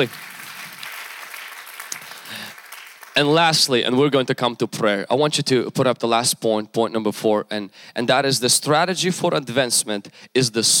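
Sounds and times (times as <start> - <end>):
speech: 0.0 - 0.3, 3.2 - 10.7
audience applause: 0.0 - 3.4.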